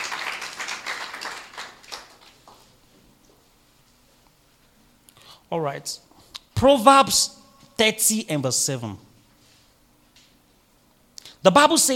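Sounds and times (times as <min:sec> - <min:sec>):
crowd applauding: 0:00.0 - 0:02.6
speech: 0:05.5 - 0:09.1, 0:11.4 - 0:11.9.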